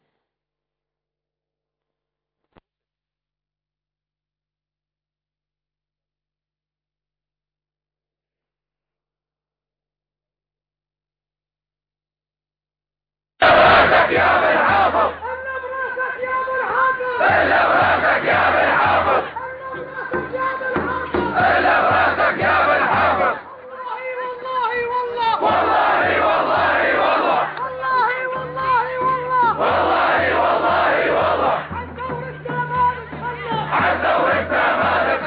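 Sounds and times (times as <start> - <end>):
street protest crowd chanting: 13.4 - 35.2.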